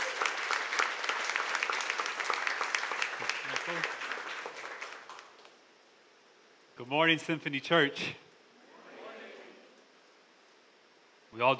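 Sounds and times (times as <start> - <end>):
audience applause: 0.0 - 5.4
speech: 6.9 - 8.2, 11.4 - 11.5.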